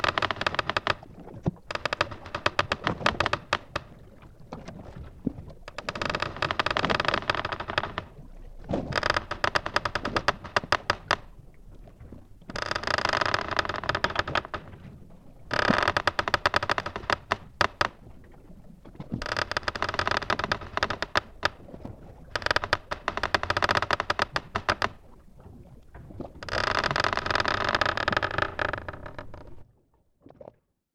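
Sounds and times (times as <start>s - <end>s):
galleon wood creaking below deck: 0.0s - 4.0s, 5.6s - 11.4s, 12.4s - 14.9s, 15.5s - 18.0s, 19.1s - 25.0s, 26.4s - 29.6s
waves below deck of a wooden galleon: 0.0s - 29.6s.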